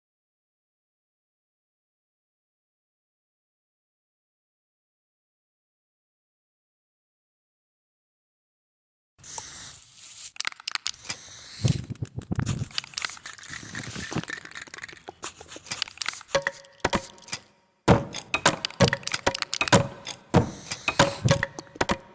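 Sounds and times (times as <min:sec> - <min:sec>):
graffiti spray can spraying: 0:09.2 - 0:22.0.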